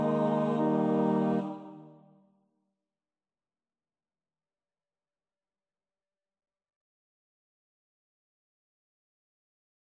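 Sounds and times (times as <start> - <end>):
midi music: 0.0 - 2.0.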